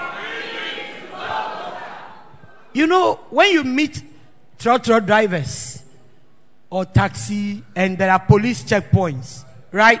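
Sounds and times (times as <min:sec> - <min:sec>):
crowd screaming and shouting: 0:00.0 - 0:02.3
speech: 0:02.8 - 0:05.7, 0:06.7 - 0:09.9.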